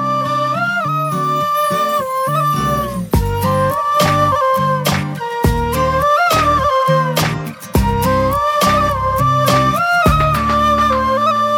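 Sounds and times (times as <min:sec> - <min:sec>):
music tone: 0:00.2 - 0:11.5.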